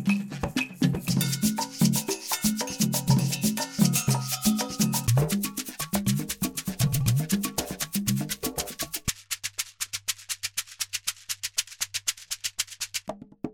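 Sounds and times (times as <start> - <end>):
music example at 120 BPM: 0.1 - 8.9.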